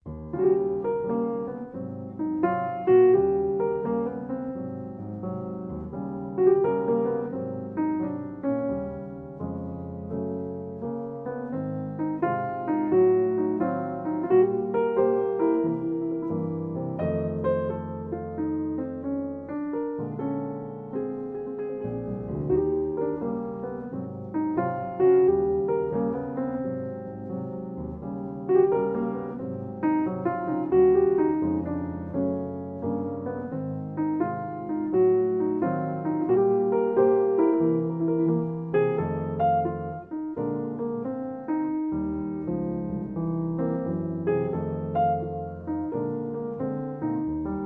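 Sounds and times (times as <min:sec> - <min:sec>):
solo piano: 0:00.0 - 0:47.6.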